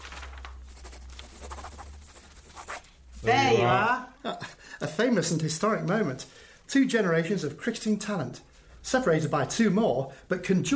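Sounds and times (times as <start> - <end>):
pen scratching on paper signing an autograph: 0.7 - 2.9
speech: 3.2 - 10.7.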